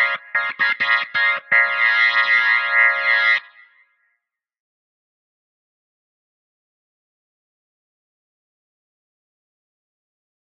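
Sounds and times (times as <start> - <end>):
jazz organ: 0.0 - 3.4.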